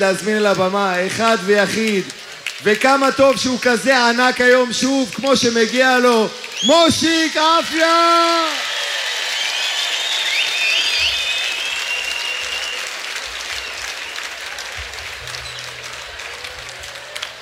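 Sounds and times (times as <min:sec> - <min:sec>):
speech: 0:00.0 - 0:08.7
crowd applause: 0:00.0 - 0:17.4
faint whistles: 0:09.3 - 0:14.3.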